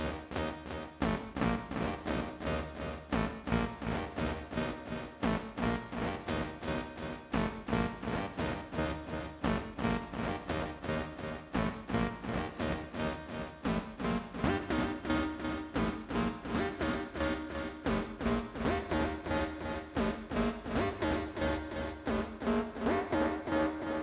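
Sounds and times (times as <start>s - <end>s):
Prophet 6 synthesizer: 0.0s - 24.0s.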